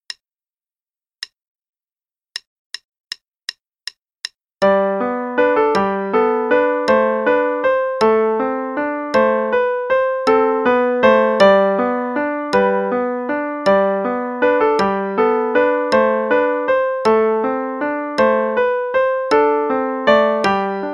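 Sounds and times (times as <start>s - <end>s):
valsette play-along music: 4.6s - 20.9s.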